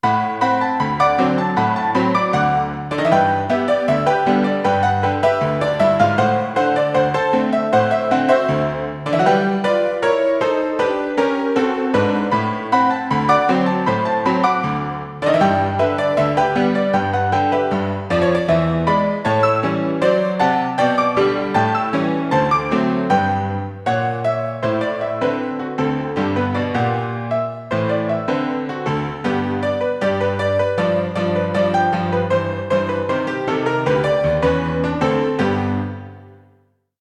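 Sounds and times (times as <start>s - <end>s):
player piano: 0.0s - 36.6s.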